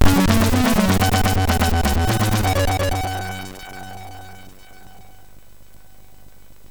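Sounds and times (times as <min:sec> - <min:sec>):
chiptune jingle on MOS6581R3 sound chip: 0:00.0 - 0:05.2.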